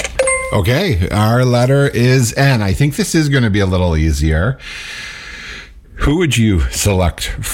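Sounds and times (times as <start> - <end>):
game-show prize wheel spinning with rattling ticks: 0.2 - 0.7
speech: 0.5 - 5.0, 6.0 - 7.5.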